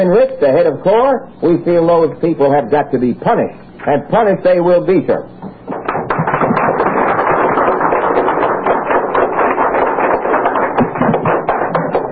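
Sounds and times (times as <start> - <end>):
speech: 0.0 - 5.5
Washington D.C. coffeehouse audience applause: 5.7 - 12.1.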